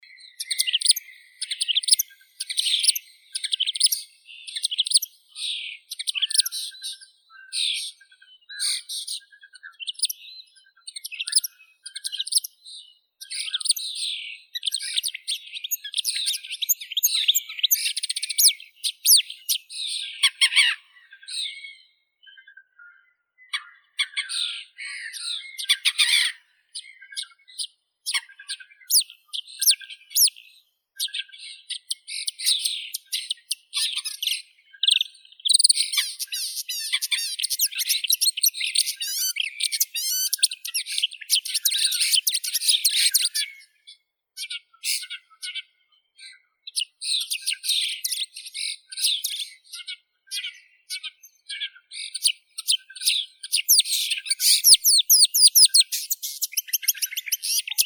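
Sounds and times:
marsh warbler Acrocephalus palustris: 0:00.0 - 0:44.0, 0:44.8 - 0:57.8.

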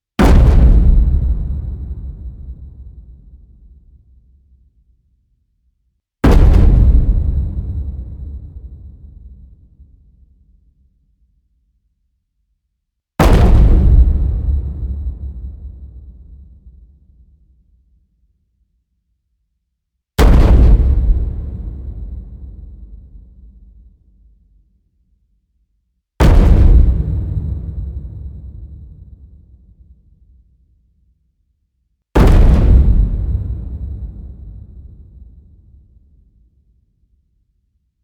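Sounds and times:
giant taiko drum hit: 0:00.2 - 0:02.9, 0:06.2 - 0:09.0, 0:13.2 - 0:16.0, 0:20.2 - 0:22.7, 0:26.2 - 0:29.0, 0:32.2 - 0:35.2.

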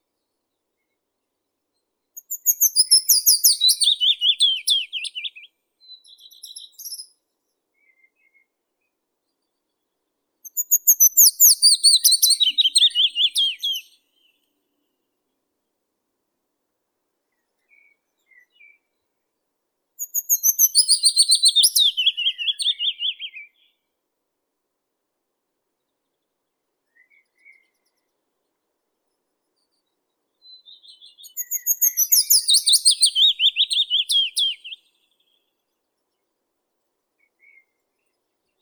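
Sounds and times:
Phylloscopus trochilus willow warbler singing: 0:02.2 - 0:07.2, 0:10.4 - 0:14.5, 0:20.0 - 0:23.8, 0:30.4 - 0:35.5.

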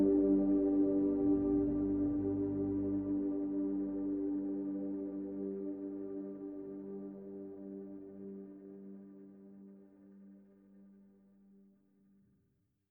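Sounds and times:
premonition synth pads: 0:00.0 - 0:09.7.

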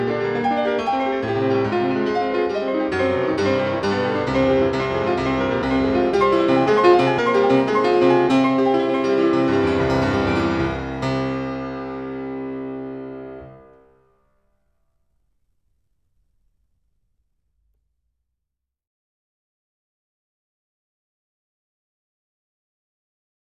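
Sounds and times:
piano sonata allegro: 0:00.0 - 0:17.8.

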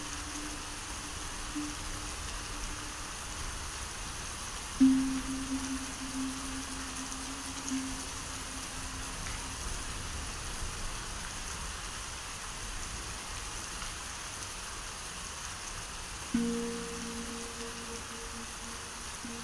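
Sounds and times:
tropical rainforest ambience: 0:00.0 - 0:19.4.

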